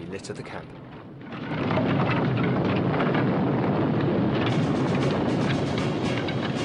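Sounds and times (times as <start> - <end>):
hut exploding in a fireball: 1.3 - 6.6.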